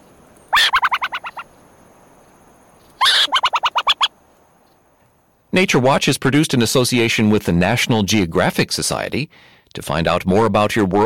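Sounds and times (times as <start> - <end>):
burrowing owl chattering alarm call: 0.4 - 1.5, 3.0 - 4.2
speech: 5.5 - 11.0.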